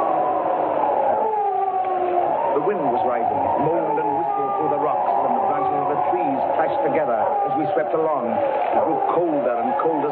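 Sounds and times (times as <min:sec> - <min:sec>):
dog howling far down the road: 0:00.0 - 0:10.1
speech: 0:02.6 - 0:10.1.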